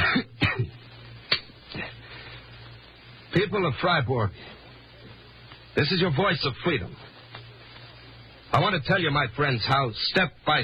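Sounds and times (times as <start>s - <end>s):
man clearing throat: 0.0s - 0.8s
man coughing: 0.0s - 0.8s
faint low hum: 0.0s - 10.6s
speech: 3.3s - 4.6s, 5.8s - 7.0s, 8.5s - 10.6s.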